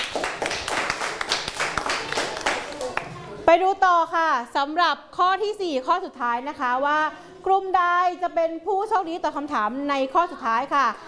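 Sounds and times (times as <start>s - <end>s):
classroom clapping: 0.0s - 3.2s
speech: 3.6s - 11.0s.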